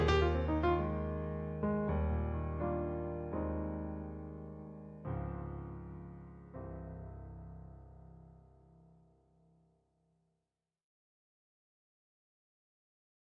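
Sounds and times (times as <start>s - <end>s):
Roland RD 100 electric piano: 0.0s - 8.7s.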